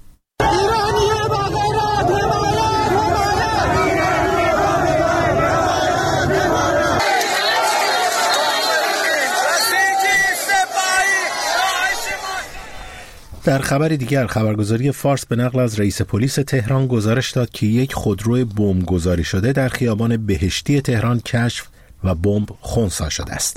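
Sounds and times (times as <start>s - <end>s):
protesters chanting anti-government slogans in street: 0.4s - 13.1s
speech: 13.5s - 23.5s.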